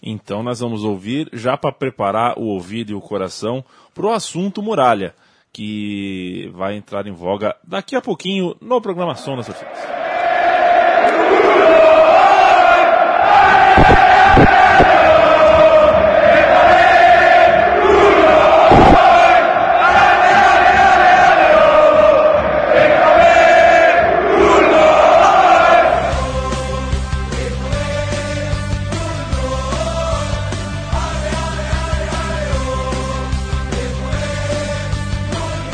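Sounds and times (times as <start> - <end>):
speech: 0.0 - 10.0
football supporters chanting in a stadium: 9.2 - 34.9
sharp thumps: 13.6 - 15.7.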